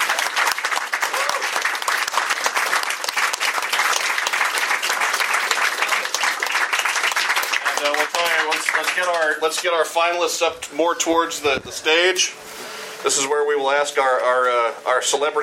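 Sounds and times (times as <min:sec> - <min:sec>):
audience applause: 0:00.0 - 0:10.2
speech: 0:09.0 - 0:15.4.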